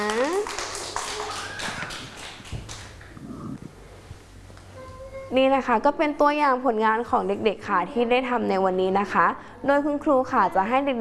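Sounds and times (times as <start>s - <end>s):
children clapping: 0.0s - 3.2s
speech: 5.3s - 11.0s.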